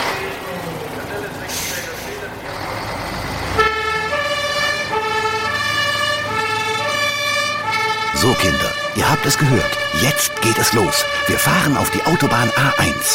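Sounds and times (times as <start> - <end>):
fire engine engine rumbling and hissing: 0.0 - 13.1
fire engine two-tone siren: 3.5 - 13.1
speech: 8.4 - 13.1.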